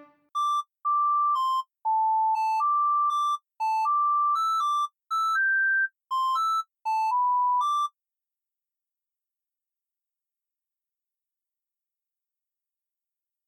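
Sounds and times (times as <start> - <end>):
morse code beeps: 0.4 - 7.9.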